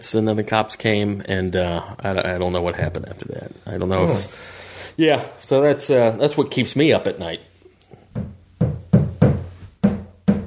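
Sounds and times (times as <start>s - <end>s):
speech: 0.0s - 7.5s
hammering: 8.1s - 10.4s.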